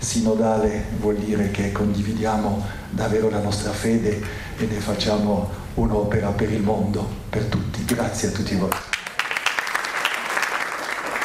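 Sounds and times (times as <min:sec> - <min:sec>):
speech: 0:00.1 - 0:08.9
small group clapping at the end of Pope Francis's funeral: 0:08.7 - 0:11.2.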